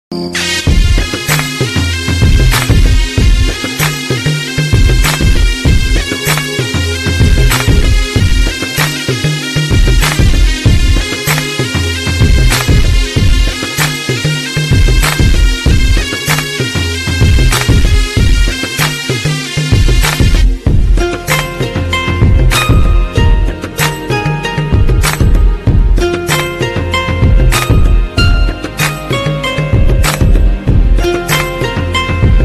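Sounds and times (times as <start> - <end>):
background music ringtone: 0.1 - 32.4.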